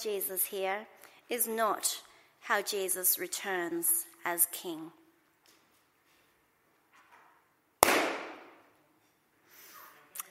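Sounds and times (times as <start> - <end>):
speech: 0.0 - 5.0
balloon popping: 7.8 - 8.6.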